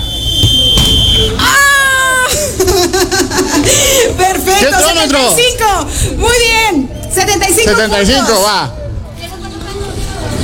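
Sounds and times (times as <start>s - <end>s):
referee's whistle blast: 0.0s - 1.8s
laughter: 1.5s - 4.2s
speech: 4.6s - 8.8s.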